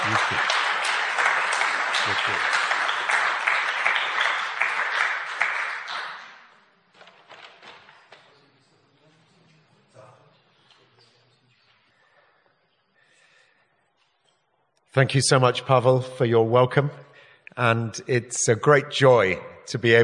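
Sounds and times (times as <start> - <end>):
audience applause at a gathering in Husinec: 0.0 - 6.5
speech: 2.0 - 2.6, 15.0 - 20.0.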